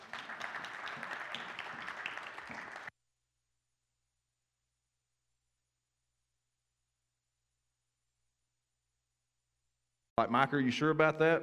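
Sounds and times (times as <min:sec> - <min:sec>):
audience applause: 0:00.0 - 0:02.9
speech: 0:10.2 - 0:11.4.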